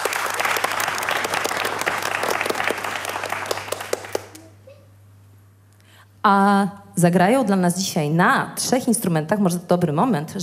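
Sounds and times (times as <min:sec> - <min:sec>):
crowd applause: 0:00.0 - 0:04.5
low steady hum: 0:00.0 - 0:10.4
speech: 0:06.2 - 0:10.4.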